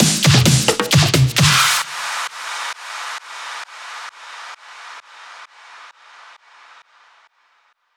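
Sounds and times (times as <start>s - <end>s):
EDM drum fill: 0.0s - 1.9s.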